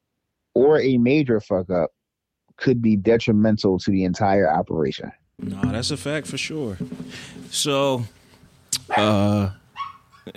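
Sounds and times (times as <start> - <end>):
speech: 0.6 - 2.0, 2.6 - 8.2, 8.9 - 9.6
pet dog named Basil barking: 8.9 - 9.2, 9.8 - 10.3.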